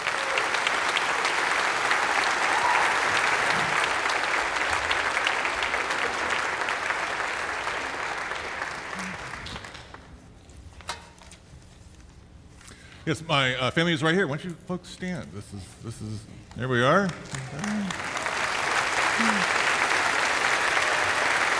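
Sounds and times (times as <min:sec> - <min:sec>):
church congregation applauding to welcome a preacher: 0:00.0 - 0:10.2, 0:16.5 - 0:21.5
speech: 0:13.1 - 0:18.2, 0:19.2 - 0:19.6.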